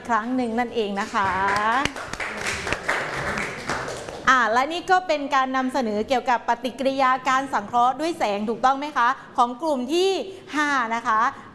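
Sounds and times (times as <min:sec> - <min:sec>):
speech: 0:00.1 - 0:02.1, 0:04.3 - 0:11.5
classroom applause: 0:01.2 - 0:04.3.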